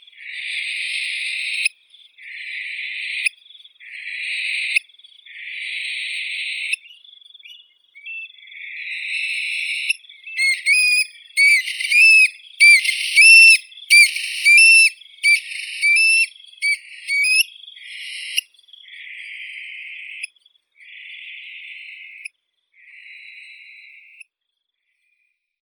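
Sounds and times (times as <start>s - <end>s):
Eurasian stone-curlew Burhinus oedicnemus calling: 0.2s - 24.2s.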